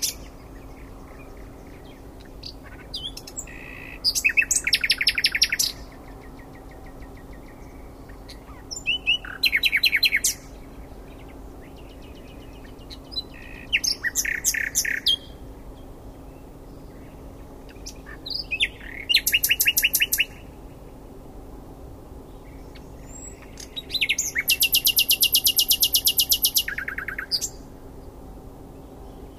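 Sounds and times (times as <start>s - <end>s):
common nightingale singing: 0.0s - 21.0s, 22.2s - 28.2s.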